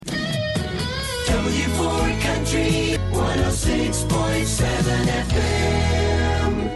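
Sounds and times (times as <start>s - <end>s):
early 90s FM country radio jingle: 0.0s - 6.7s.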